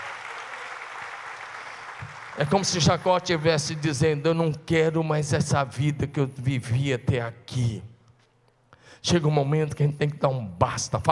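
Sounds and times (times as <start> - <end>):
audience applauding: 0.0 - 4.2
speech: 2.4 - 7.9, 9.0 - 11.0.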